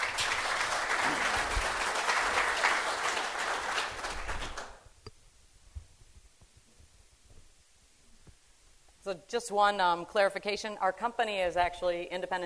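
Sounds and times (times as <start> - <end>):
audience clapping welcoming a panel: 0.0 - 4.9
speech: 9.1 - 12.4.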